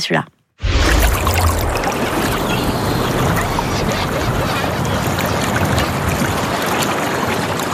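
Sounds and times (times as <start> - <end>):
seaside waves lapping and splashing: 0.6 - 7.7.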